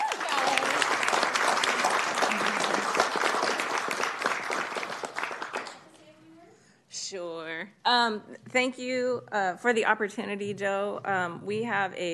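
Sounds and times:
round of applause: 0.0 - 5.9
speech: 8.0 - 12.1.

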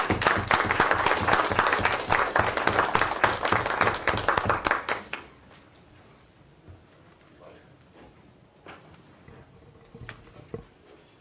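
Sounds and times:
round of applause: 0.0 - 5.3.

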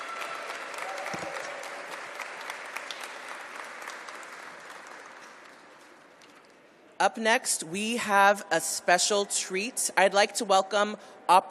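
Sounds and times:
audience applauding the mayor: 0.0 - 6.0
speech: 7.0 - 11.4.

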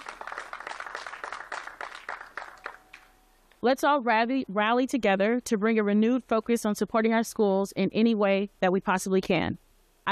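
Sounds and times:
audience applause: 0.0 - 3.1
speech: 3.6 - 10.1.

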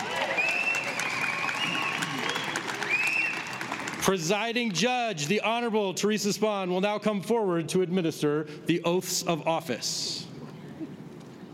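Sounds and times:
audience applause: 0.0 - 4.2
speech: 4.0 - 10.3.

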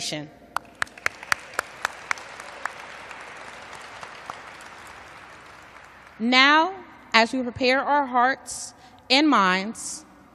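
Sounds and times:
speech: 0.0 - 0.4, 6.2 - 10.1
audience applause: 0.6 - 6.2.

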